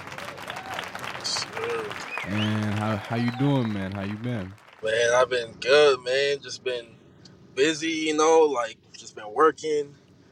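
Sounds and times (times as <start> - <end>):
crowd applause: 0.0 - 4.9
bright whoop or cheer: 0.2 - 1.0
speech: 1.3 - 7.0, 7.6 - 10.0.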